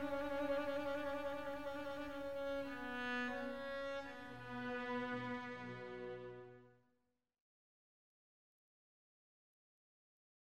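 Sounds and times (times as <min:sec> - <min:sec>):
cello: 0:00.0 - 0:06.9.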